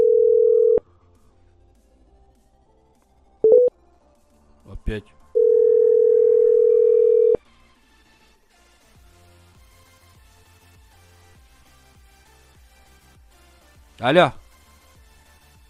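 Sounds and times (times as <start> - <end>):
Russian telephone line dial tone: 0.0 - 0.8, 3.4 - 3.7, 5.4 - 7.4
speech: 4.9 - 5.2, 14.0 - 14.4.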